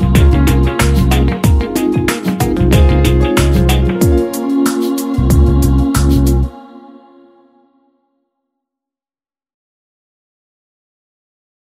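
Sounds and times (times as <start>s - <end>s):
piano: 0.0s - 7.2s.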